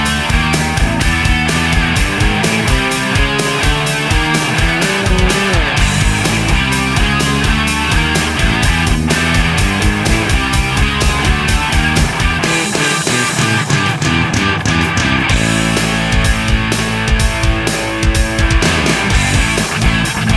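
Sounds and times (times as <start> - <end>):
rock music from a music box: 0.0 - 20.3.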